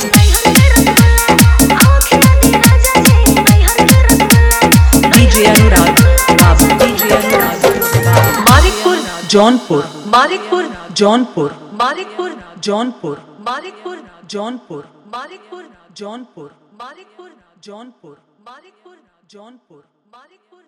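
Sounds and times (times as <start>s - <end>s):
dholki bass dance mix: 0.0s - 12.2s.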